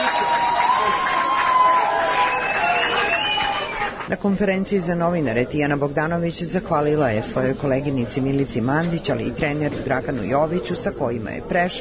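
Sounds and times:
fans applauding at airport welcome: 0:00.0 - 0:04.2
speech: 0:04.1 - 0:11.7.

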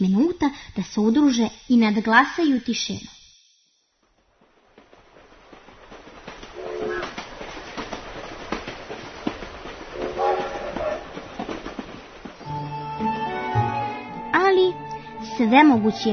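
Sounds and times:
speech: 0:00.0 - 0:03.2, 0:15.4 - 0:16.1
train rumbling with rattling, clanking cars: 0:04.0 - 0:16.1.

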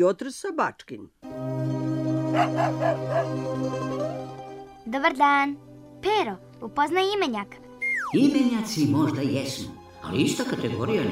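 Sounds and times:
speech: 0:00.0 - 0:03.8, 0:04.9 - 0:11.1
dog barking: 0:02.3 - 0:03.4.

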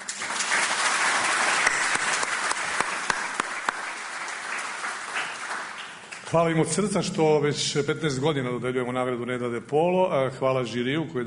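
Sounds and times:
audience applause at an award ceremony: 0:00.0 - 0:06.3
speech: 0:06.3 - 0:11.2.

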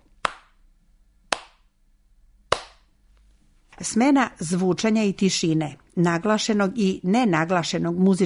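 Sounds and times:
hand claps in a simple rhythm: 0:00.2 - 0:00.6, 0:01.3 - 0:01.6, 0:02.5 - 0:02.9
speech: 0:03.8 - 0:08.2.

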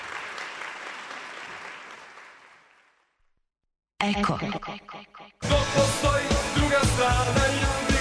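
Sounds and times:
audience applause after a piano and voice concert: 0:00.0 - 0:03.0
speech: 0:04.0 - 0:07.9.

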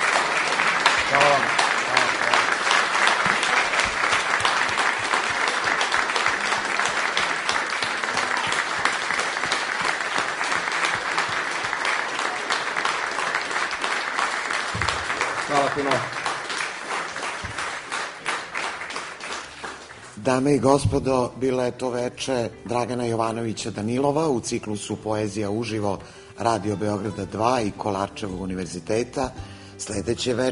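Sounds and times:
audience applause after a live poetry evening: 0:00.0 - 0:20.4
speech: 0:20.3 - 0:30.5.

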